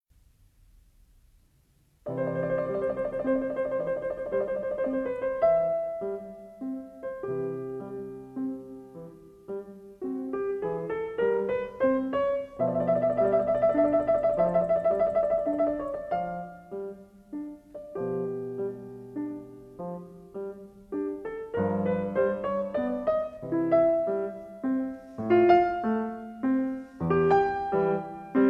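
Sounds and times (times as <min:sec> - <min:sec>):
piano sonata second movement: 0:00.2 - 0:28.4.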